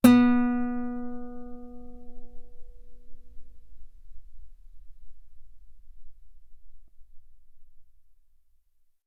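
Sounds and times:
loud guitar note on the B string: 0.0 - 4.6.

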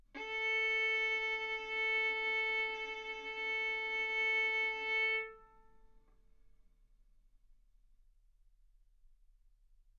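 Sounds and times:
violin arco on A string: 0.0 - 5.8.

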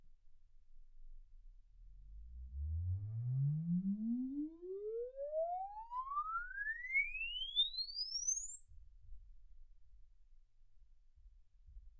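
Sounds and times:
exponential sine sweep from 10 Hz to 24 kHz: 2.1 - 9.7.

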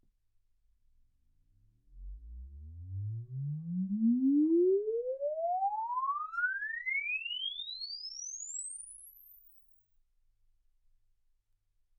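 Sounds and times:
exponential sine sweep from 10 Hz to 24 kHz: 2.0 - 9.7.

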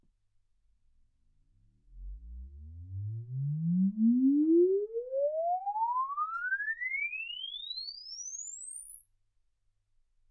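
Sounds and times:
exponential sine sweep from 10 Hz to 24 kHz: 2.0 - 9.6.

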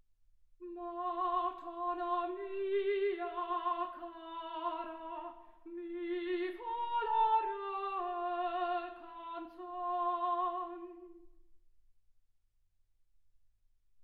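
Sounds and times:
soprano singing: 0.6 - 11.3.

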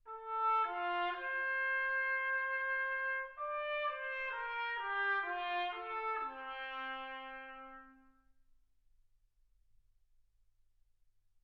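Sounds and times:
trumpet: 0.0 - 8.4.

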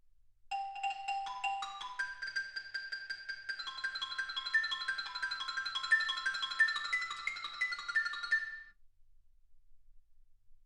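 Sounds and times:
xylophone: 0.5 - 8.7.

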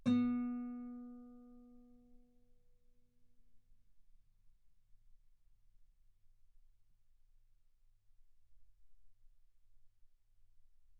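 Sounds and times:
guitar note B3: 0.0 - 1.6.

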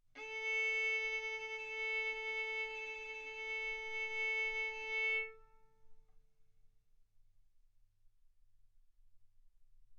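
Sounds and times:
violin bowed mezzo-forte on the A string, A4 and B4: 0.2 - 5.6.

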